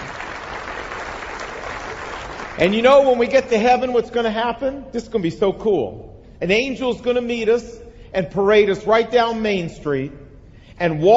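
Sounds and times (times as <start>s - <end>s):
church congregation applauding during a sermon: 0.0s - 3.6s
speech: 2.6s - 10.2s, 10.8s - 11.1s.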